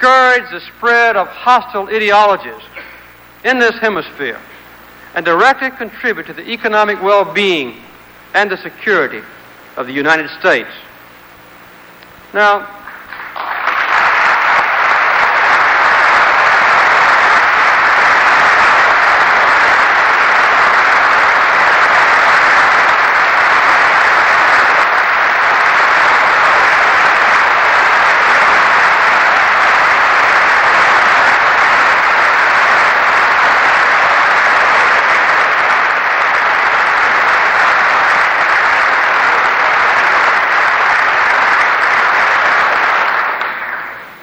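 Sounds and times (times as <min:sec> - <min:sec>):
speech: 0:00.0 - 0:02.8, 0:03.4 - 0:04.5, 0:05.1 - 0:10.9, 0:12.3 - 0:12.8
audience applause: 0:12.8 - 0:44.1.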